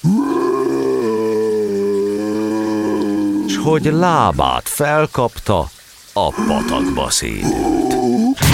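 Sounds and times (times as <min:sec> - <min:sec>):
giant bellowing in pain: 0:00.0 - 0:03.9, 0:06.2 - 0:08.4
speech: 0:03.6 - 0:08.4.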